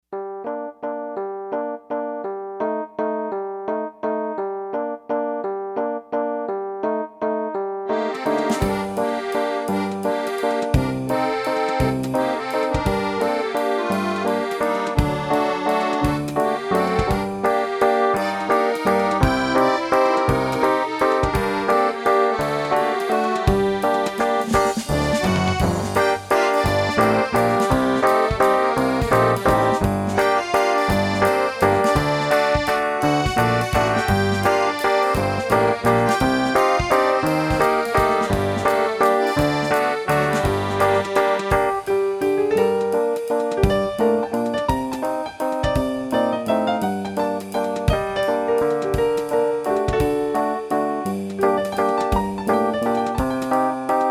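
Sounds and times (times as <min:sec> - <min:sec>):
waltz music: 0:00.2 - 0:54.1.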